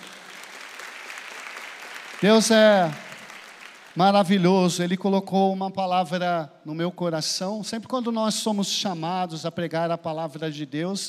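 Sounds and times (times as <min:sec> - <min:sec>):
audience applause: 0:00.0 - 0:04.1
speech: 0:02.2 - 0:03.0, 0:04.0 - 0:11.0.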